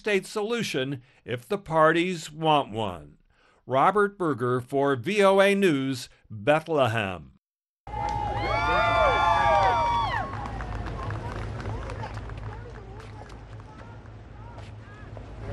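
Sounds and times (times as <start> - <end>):
speech: 0.0 - 8.1
crowd cheering at Family Church in West Palm Beach: 7.9 - 15.5.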